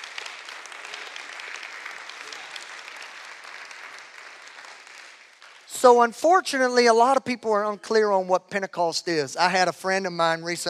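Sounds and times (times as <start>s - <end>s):
audience clapping hands: 0.0s - 6.6s
speech: 5.8s - 10.6s.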